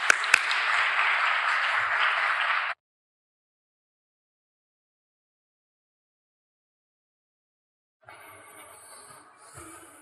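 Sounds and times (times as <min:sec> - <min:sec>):
audience applause: 0:00.0 - 0:02.8.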